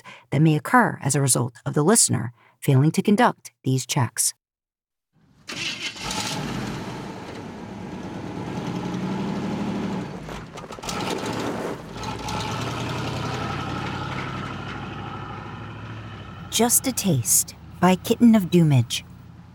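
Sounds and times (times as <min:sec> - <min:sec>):
speech: 0:00.3 - 0:04.4, 0:16.6 - 0:19.1
car engine starting and idling: 0:05.2 - 0:19.5.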